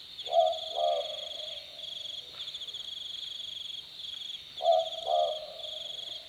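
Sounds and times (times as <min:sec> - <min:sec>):
southern boobook giving two-note boo-book calls on a summer night: 0:00.3 - 0:01.7, 0:04.6 - 0:06.0.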